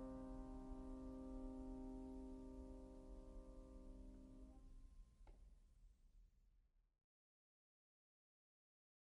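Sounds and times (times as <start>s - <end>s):
prelude in C minor on piano: 0.0s - 4.5s.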